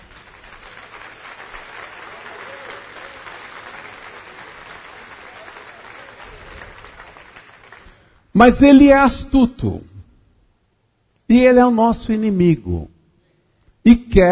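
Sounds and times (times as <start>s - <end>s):
audience applause: 0.0s - 8.2s
speech: 8.4s - 9.9s, 11.3s - 12.9s, 13.8s - 14.2s.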